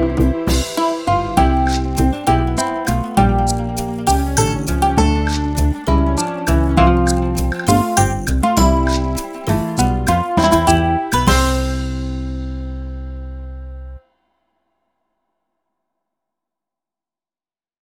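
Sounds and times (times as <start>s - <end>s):
waltz music: 0.0s - 14.0s.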